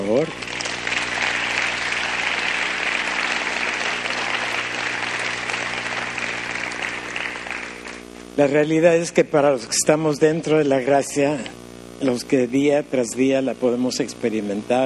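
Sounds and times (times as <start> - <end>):
speech: 0.0 - 0.6, 8.4 - 14.8
large crowd applauding loudly: 0.0 - 8.1.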